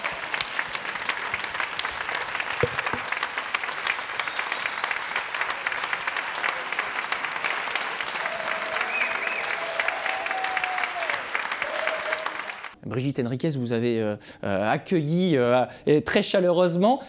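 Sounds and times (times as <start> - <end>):
standing ovation crowd applause: 0.0 - 12.8
speech: 13.0 - 17.0.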